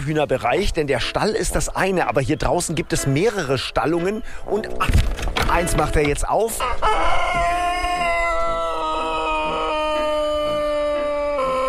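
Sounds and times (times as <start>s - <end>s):
speech: 0.0s - 7.5s
Serbian Sanchak rooster crowing: 6.6s - 11.6s.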